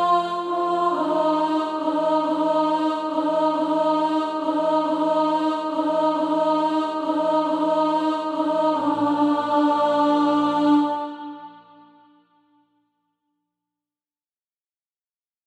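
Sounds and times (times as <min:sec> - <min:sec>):
alto voice singing: 0:00.0 - 0:12.1.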